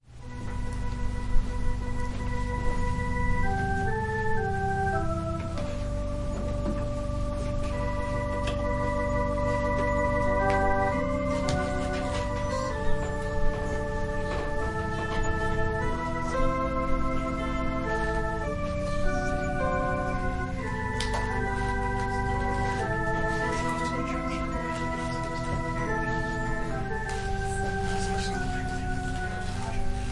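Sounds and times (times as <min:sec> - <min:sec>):
organ prelude: 0:00.0 - 0:30.1.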